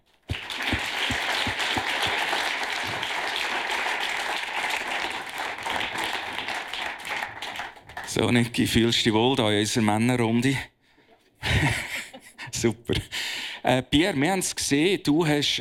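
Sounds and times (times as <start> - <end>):
audience applause: 0.2 - 8.2
speech: 8.2 - 10.7, 12.6 - 15.5
laughter: 11.4 - 12.5.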